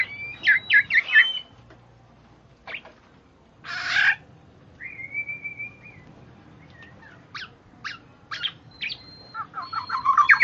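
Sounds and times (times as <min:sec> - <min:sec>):
bird chirping calls: 0:00.0 - 0:01.6, 0:04.8 - 0:10.4.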